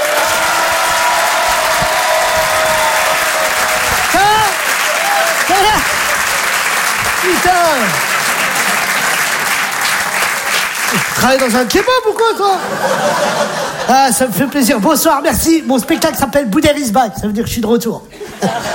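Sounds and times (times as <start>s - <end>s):
comedy show audience applauding and cheering for a stand-up comedian: 0.0s - 13.8s
person calling out: 4.1s - 4.6s, 5.5s - 5.9s
laughter: 5.4s - 16.5s, 18.1s - 18.7s
speech: 7.3s - 8.1s, 11.2s - 18.7s.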